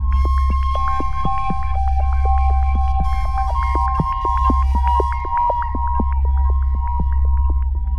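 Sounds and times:
flute with tribal beat: 0.0 - 7.2.

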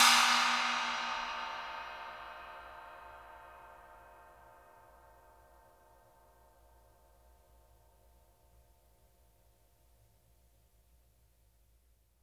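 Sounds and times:
pang cymbals struck with a stick: 0.0 - 3.4.

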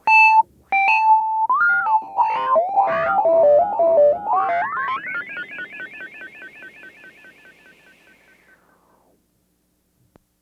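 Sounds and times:
Rhodes electric piano effects: 0.1 - 8.3.

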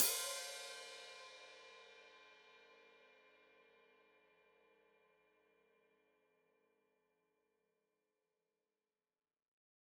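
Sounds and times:
open hi-hat played with foot: 0.0 - 1.3.

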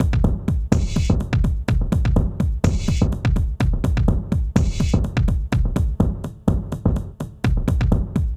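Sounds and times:
funky techno music: 0.0 - 8.3.

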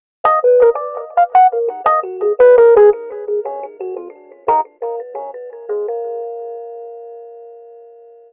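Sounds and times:
Rhodes cinematic funk music: 0.2 - 6.7.

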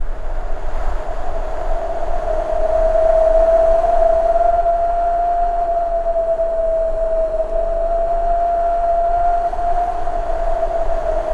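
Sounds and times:
vocal howling wind: 0.0 - 11.3.

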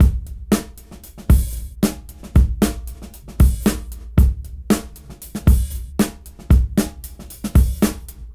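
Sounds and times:
fat bouncy beat at 113 BPM: 0.0 - 8.3.

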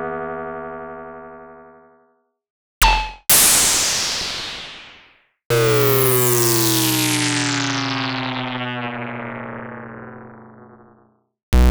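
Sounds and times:
Prophet-5 synthesizer effects: 2.8 - 11.6.

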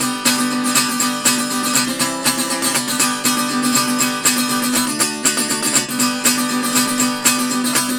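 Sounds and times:
Appalachian tenor guitar: 0.0 - 7.9.

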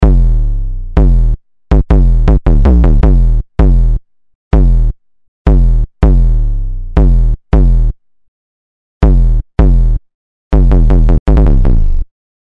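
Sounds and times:
distorted kick drum: 0.0 - 4.0, 4.6 - 8.0, 9.0 - 12.1.

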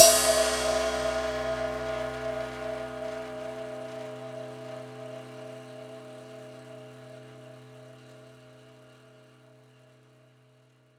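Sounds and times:
prepared drums: 0.0 - 4.4.

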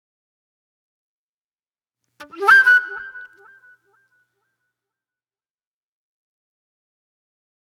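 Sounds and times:
flute with sharp delay: 2.2 - 3.6.

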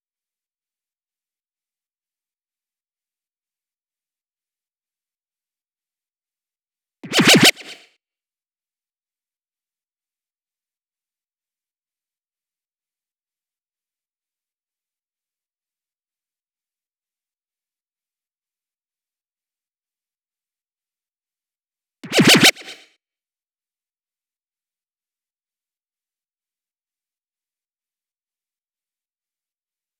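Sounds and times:
128 BPM laser FX fill: 7.0 - 7.8, 22.0 - 22.8.

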